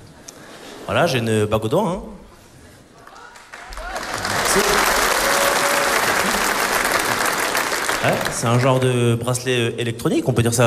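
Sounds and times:
speech: 0:00.9 - 0:02.2, 0:08.0 - 0:10.6
audience applauding after a performer jokes about being married: 0:03.0 - 0:09.1.

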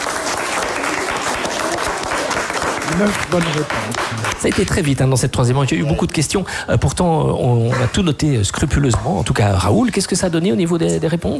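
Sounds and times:
applause at the end of a quiz round: 0:00.0 - 0:05.1
speech: 0:03.0 - 0:11.3.

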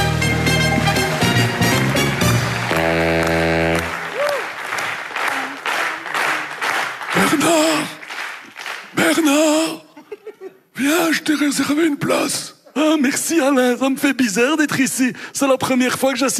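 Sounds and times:
studio audience applause: 0:00.0 - 0:09.4
laughter: 0:09.7 - 0:10.7
speech: 0:11.4 - 0:16.3.

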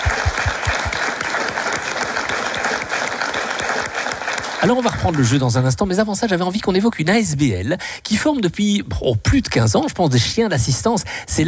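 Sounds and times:
crowd applauding: 0:00.0 - 0:06.1
speech: 0:04.6 - 0:11.4.

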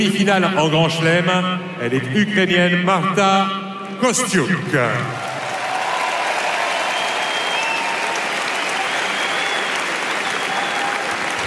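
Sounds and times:
speech: 0:00.0 - 0:05.3
tennis crowd applause: 0:05.1 - 0:11.4.

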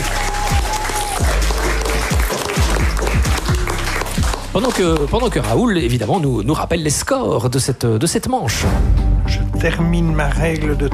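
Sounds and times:
people applauding: 0:00.0 - 0:06.3
speech: 0:04.6 - 0:09.0, 0:09.6 - 0:10.9.

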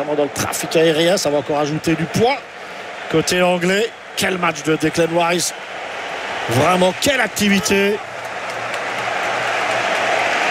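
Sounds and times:
speech: 0:00.0 - 0:05.8, 0:06.4 - 0:08.1
football stadium crowd applauding a substitute: 0:00.0 - 0:10.4.

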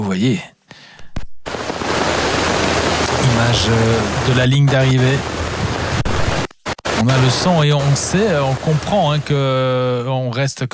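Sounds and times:
speech: 0:00.1 - 0:00.6, 0:03.4 - 0:05.7, 0:07.0 - 0:10.7
rain falling in Font-Romeu: 0:01.4 - 0:10.0.

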